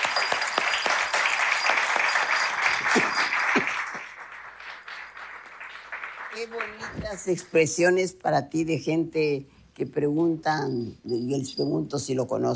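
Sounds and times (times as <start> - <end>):
audience applause: 0.0 - 7.0
speech: 6.4 - 12.5.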